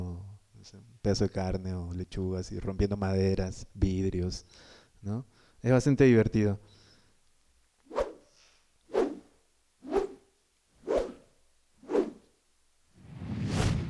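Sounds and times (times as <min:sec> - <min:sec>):
speech: 0:00.7 - 0:06.8
whoosh sound effects cutting through air: 0:10.8 - 0:11.2, 0:11.8 - 0:12.2, 0:13.0 - 0:13.8.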